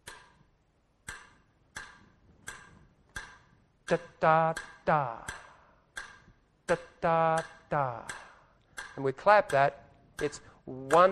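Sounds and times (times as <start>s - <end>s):
metronome ticking: 0.0s - 11.1s
speech: 3.9s - 5.4s, 6.7s - 8.2s, 9.0s - 11.1s.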